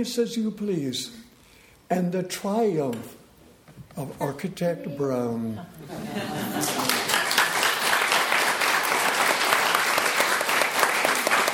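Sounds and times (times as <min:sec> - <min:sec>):
speech: 0:00.0 - 0:01.3, 0:01.9 - 0:03.2, 0:04.0 - 0:06.8
laughter: 0:05.4 - 0:07.6
audience applause: 0:06.2 - 0:11.5.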